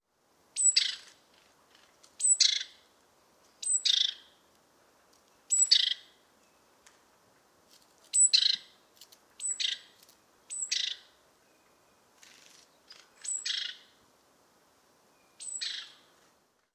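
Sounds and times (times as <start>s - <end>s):
great tit calls: 0.6s - 1.2s, 2.2s - 2.8s, 3.6s - 4.4s, 5.5s - 6.2s, 8.1s - 8.8s, 9.4s - 14.0s, 15.2s - 16.1s.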